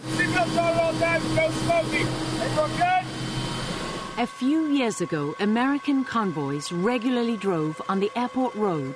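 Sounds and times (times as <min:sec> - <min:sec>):
helicopter in flight droning: 0:00.0 - 0:08.9
speech: 0:00.4 - 0:03.2, 0:04.2 - 0:08.9.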